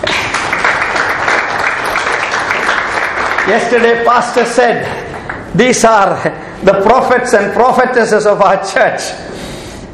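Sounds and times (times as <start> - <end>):
crowd of people clapping: 0.0 - 5.5
speech: 3.5 - 5.0, 5.6 - 9.5.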